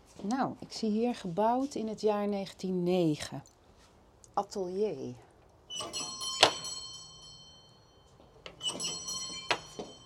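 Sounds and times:
speech: 0.2 - 3.5, 4.4 - 6.1
old doorbell ringing: 5.7 - 10.0.

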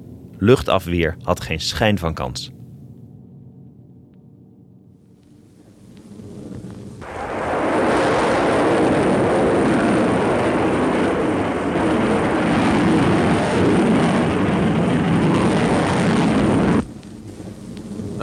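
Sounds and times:
faint low rumble: 0.0 - 18.2
speech: 0.4 - 2.6
V2 rocket takeoff roar: 5.3 - 18.2.

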